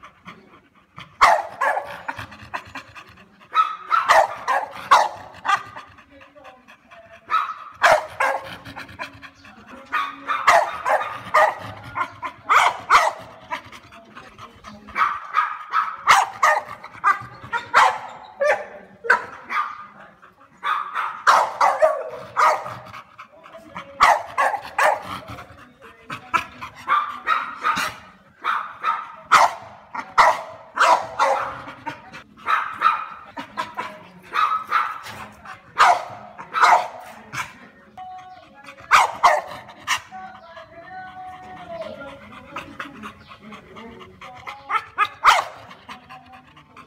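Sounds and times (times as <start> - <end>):
French Bulldog barking: 1.2 - 2.2, 3.5 - 5.8, 7.3 - 8.6, 9.9 - 13.3, 14.9 - 19.9, 20.6 - 22.9, 24.0 - 25.2, 26.8 - 31.8, 32.4 - 33.7, 34.3 - 35.2, 35.8 - 37.2, 38.9 - 40.0, 44.7 - 45.6.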